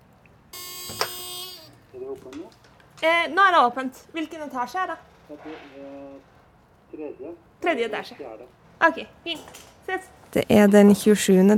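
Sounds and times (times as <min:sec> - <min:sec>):
door intercom buzzer: 0:00.5 - 0:01.8
speech: 0:02.0 - 0:06.3, 0:06.9 - 0:11.5.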